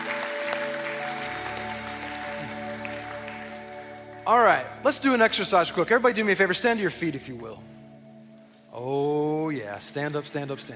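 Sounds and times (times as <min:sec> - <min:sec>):
church congregation applauding to welcome guests: 0:00.0 - 0:04.2
sustained musical tones: 0:00.0 - 0:10.7
speech: 0:04.3 - 0:07.7, 0:08.8 - 0:10.7.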